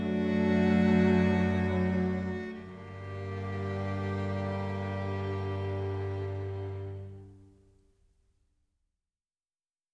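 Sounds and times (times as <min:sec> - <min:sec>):
string quintet chamber music: 0:00.0 - 0:07.5.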